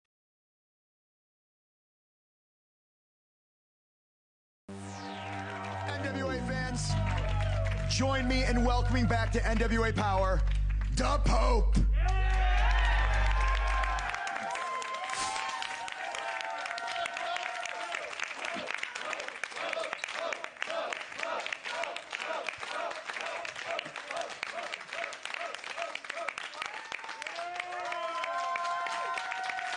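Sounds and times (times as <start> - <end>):
wrestling fans at an NWA Power event cheering and applauding: 4.8 - 29.7
wrestling crowd shouts: 5.2 - 9.1, 12.0 - 29.7
commentator talking: 5.8 - 11.9
speech: 6.7 - 7.2, 7.9 - 12.2.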